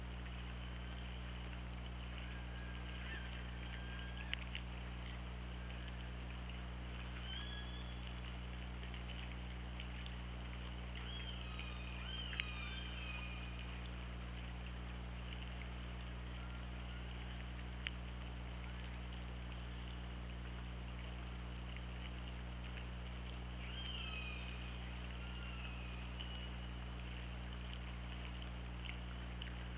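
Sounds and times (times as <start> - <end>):
low underwater hum and hiss: 0.0 - 29.7
killer whale calls: 2.1 - 4.6, 7.1 - 8.0, 11.0 - 13.8, 23.6 - 26.8.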